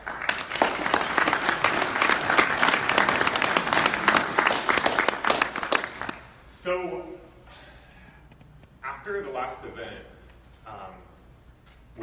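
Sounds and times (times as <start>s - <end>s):
audience applause: 0.0s - 6.3s
speech: 9.4s - 10.2s.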